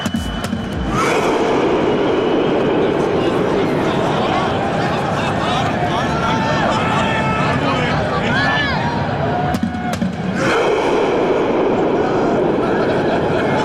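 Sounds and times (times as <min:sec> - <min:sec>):
stadium crowd doing rowing chant sound: 0:00.0 - 0:13.6
laughter: 0:10.4 - 0:13.6.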